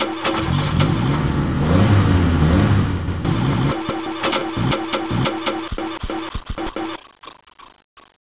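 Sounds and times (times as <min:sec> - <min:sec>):
engine: 0:00.0 - 0:05.8.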